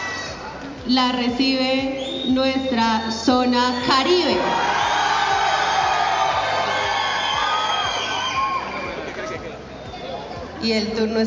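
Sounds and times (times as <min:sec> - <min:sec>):
large crowd cheering and shouting: 0:00.0 - 0:00.9, 0:02.8 - 0:10.4
speech: 0:00.9 - 0:04.9, 0:10.6 - 0:11.2.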